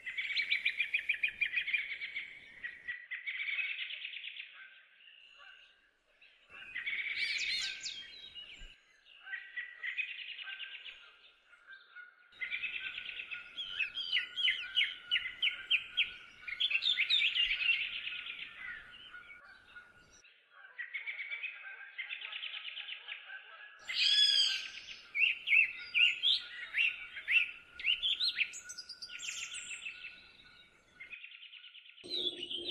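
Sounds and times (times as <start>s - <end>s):
several songbirds singing: 0.0s - 32.6s.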